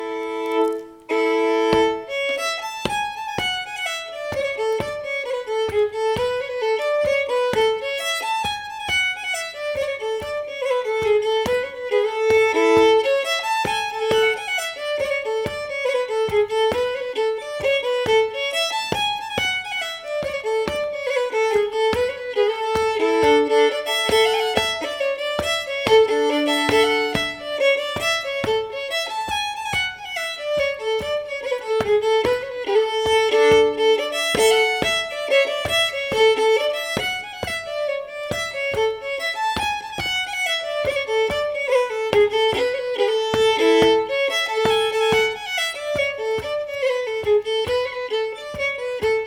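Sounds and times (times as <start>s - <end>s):
polska folk dance tune: 0.0s - 49.2s.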